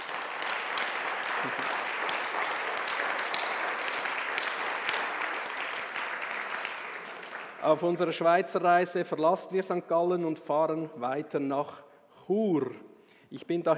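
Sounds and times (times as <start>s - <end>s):
audience applause: 0.0s - 8.0s
speech: 1.4s - 1.8s, 7.6s - 13.7s.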